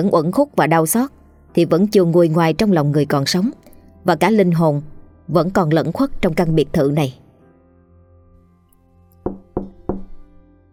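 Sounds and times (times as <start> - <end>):
speech: 0.0 - 7.2
knocking on a door: 9.2 - 10.3.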